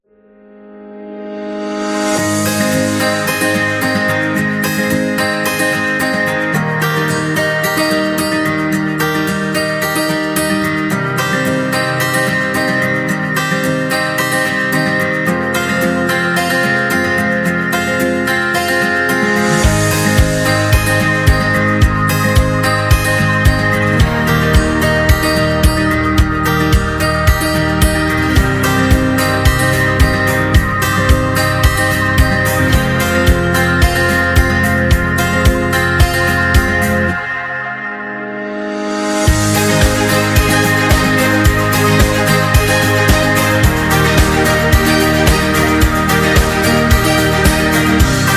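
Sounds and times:
inspiring acoustic music: 0.5s - 48.3s.

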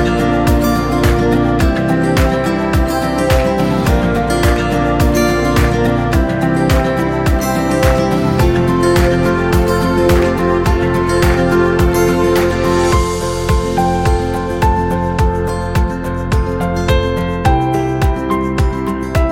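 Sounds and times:
upbeat acoustic guitar background music: 0.0s - 19.3s.

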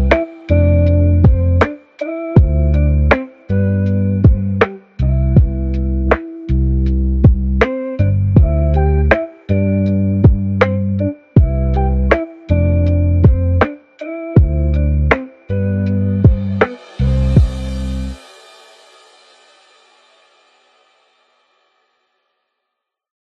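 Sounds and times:
jazzy modern lo-fi and retro background music: 0.0s - 18.2s.

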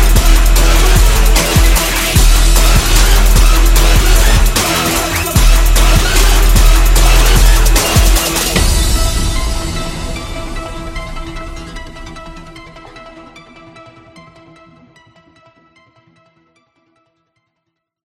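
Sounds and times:
trap beat: 0.0s - 13.4s.

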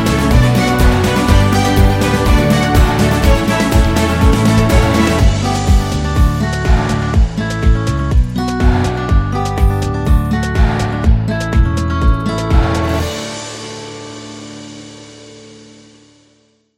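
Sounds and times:
ukulele kids school music: 0.0s - 13.4s.

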